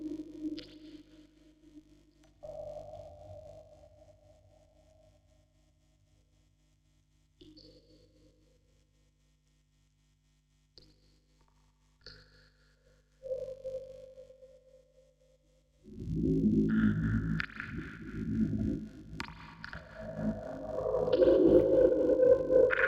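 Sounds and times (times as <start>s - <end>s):
vocoder recorded on tape: 16.0s - 22.8s.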